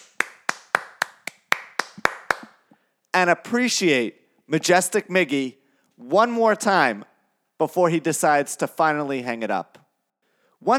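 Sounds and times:
hand clapping as a tribute: 0:00.0 - 0:02.8
speech: 0:03.1 - 0:09.8, 0:10.6 - 0:10.7.

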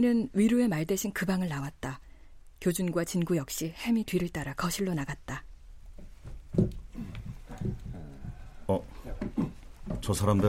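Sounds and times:
speech: 0:00.0 - 0:02.0, 0:02.6 - 0:05.5, 0:06.6 - 0:06.8, 0:08.7 - 0:09.0, 0:10.0 - 0:10.4
tangled footsteps of a group of people coming down the stairs: 0:05.9 - 0:10.4.

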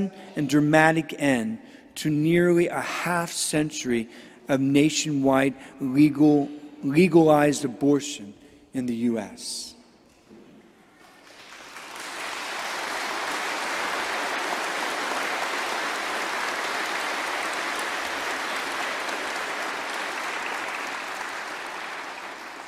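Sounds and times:
speech: 0:00.0 - 0:09.8
audience applause: 0:11.0 - 0:22.6.

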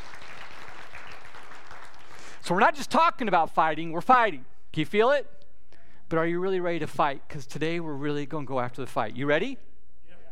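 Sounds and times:
crowd applause: 0:00.0 - 0:02.4
speech: 0:02.5 - 0:05.4, 0:06.1 - 0:09.7.

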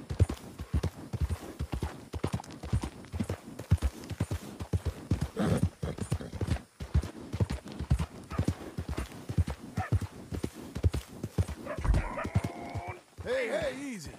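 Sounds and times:
horse hooves clip-clopping at a walking pace: 0:00.0 - 0:14.1
horse whinnying: 0:11.7 - 0:13.0.

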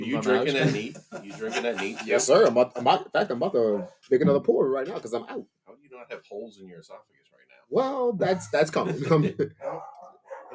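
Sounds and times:
speech: 0:00.0 - 0:10.0
laughter: 0:00.2 - 0:02.6
dogs barking: 0:03.7 - 0:04.0, 0:09.6 - 0:10.5.

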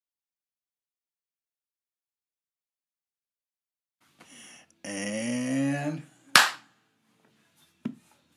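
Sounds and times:
speech: 0:04.8 - 0:06.1
hand clap for syncing recordings: 0:06.4 - 0:06.7.

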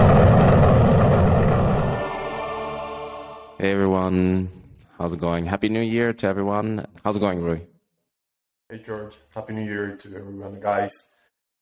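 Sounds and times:
rocket engine roar: 0:00.0 - 0:03.6
speech: 0:03.6 - 0:07.7, 0:08.7 - 0:11.1.

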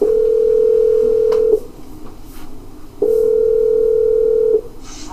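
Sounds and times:
steady mid-pitched telephone tone: 0:00.0 - 0:01.7, 0:03.0 - 0:04.6.

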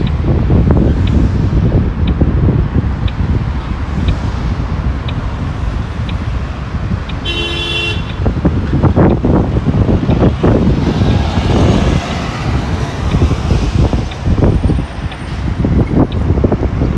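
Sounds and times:
traffic rumble in Modiin, Israel: 0:00.0 - 0:16.9
wind buffeting: 0:00.0 - 0:16.9
car horn toot: 0:07.2 - 0:08.3.

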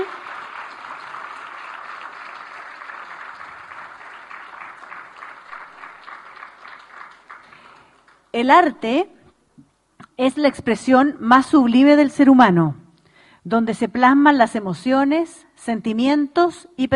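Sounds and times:
audience applause: 0:00.0 - 0:08.3
speech: 0:08.4 - 0:09.2, 0:10.2 - 0:12.8, 0:13.4 - 0:16.9.

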